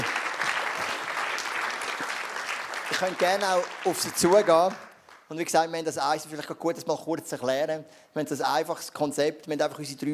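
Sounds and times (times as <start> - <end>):
audience applause: 0.0 - 5.1
speech: 3.0 - 10.1.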